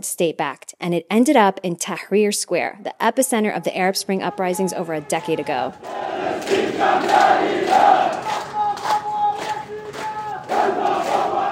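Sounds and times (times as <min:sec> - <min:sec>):
speech: 0:00.0 - 0:08.2
protest crowd chanting: 0:03.8 - 0:11.5.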